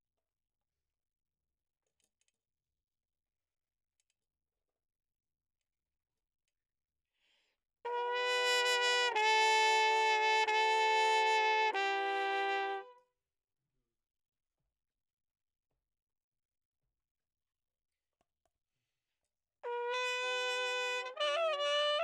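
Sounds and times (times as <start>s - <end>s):
trumpet: 7.8s - 13.1s, 19.6s - 22.0s.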